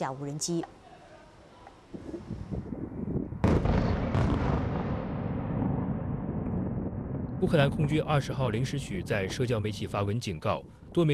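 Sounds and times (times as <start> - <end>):
speech: 0.0 - 0.8, 7.4 - 11.1
strong explosions during missile attack: 2.7 - 10.1.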